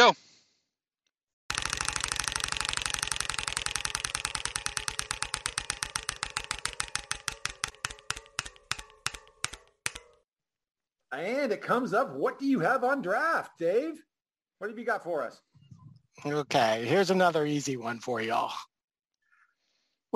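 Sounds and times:
speech: 0.1s - 0.3s, 11.2s - 15.5s, 16.2s - 18.7s
prize wheel spun during a football trivia game: 1.5s - 10.2s.

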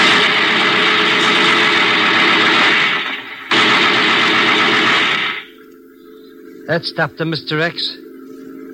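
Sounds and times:
machine gun fire: 0.0s - 5.6s
speech: 6.7s - 8.0s.

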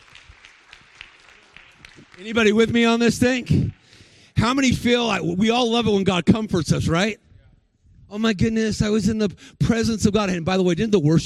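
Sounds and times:
audience clapping: 0.0s - 5.0s
speech: 2.2s - 3.8s, 4.4s - 7.2s, 8.1s - 11.2s.

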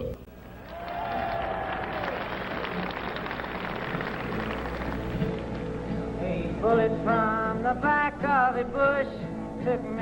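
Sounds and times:
crowd clapping: 0.5s - 5.7s
speech: 6.7s - 9.9s.

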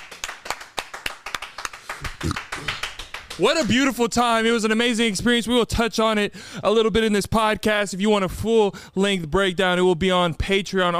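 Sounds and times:
audience applause: 0.0s - 3.8s
speech: 3.4s - 10.9s.

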